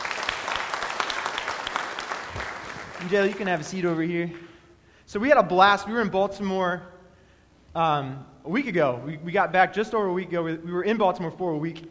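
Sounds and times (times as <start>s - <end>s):
audience clapping: 0.0s - 4.0s
speech: 3.0s - 4.5s, 5.1s - 6.9s, 7.7s - 11.8s.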